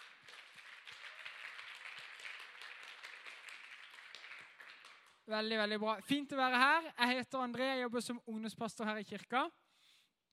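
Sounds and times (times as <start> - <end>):
audience applause: 0.0 - 5.2
speech: 5.3 - 9.6.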